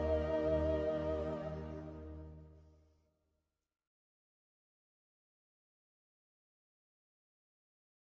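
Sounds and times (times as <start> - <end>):
soprano singing: 0.0 - 2.2.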